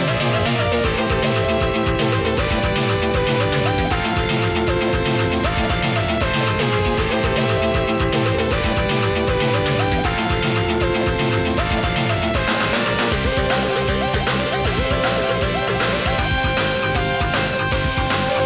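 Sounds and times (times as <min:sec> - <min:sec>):
ranking background music: 0:00.0 - 0:18.4.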